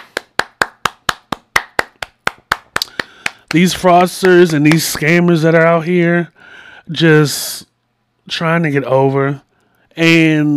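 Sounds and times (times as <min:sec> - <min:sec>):
hand clapping: 0:00.0 - 0:05.7
speech: 0:03.5 - 0:07.7, 0:08.3 - 0:09.4, 0:10.0 - 0:10.5.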